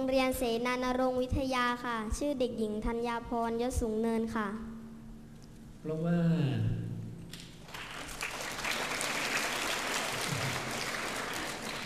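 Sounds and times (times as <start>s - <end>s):
speech: 0.0s - 4.7s, 5.8s - 6.9s
crowd applause: 7.6s - 11.8s.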